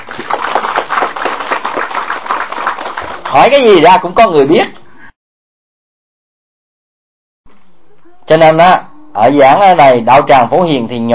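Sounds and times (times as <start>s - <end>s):
crowd applauding: 0.0s - 3.6s
speech: 3.3s - 4.8s, 8.4s - 11.1s.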